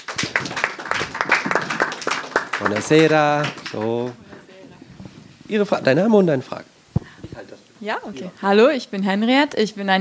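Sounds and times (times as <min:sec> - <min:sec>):
audience clapping at a German-language event: 0:00.0 - 0:04.5
speech: 0:02.6 - 0:04.3, 0:05.5 - 0:06.7, 0:07.8 - 0:09.9.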